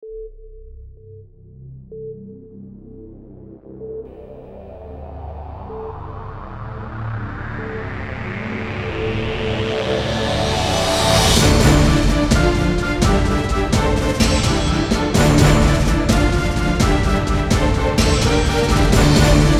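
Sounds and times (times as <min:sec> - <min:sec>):
dramatic logo intro music: 0:04.5 - 0:19.5.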